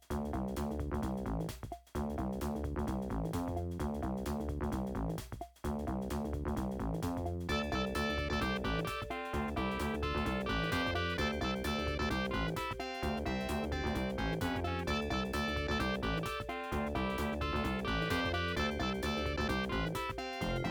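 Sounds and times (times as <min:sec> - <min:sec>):
funk music: 0:00.2 - 0:20.6.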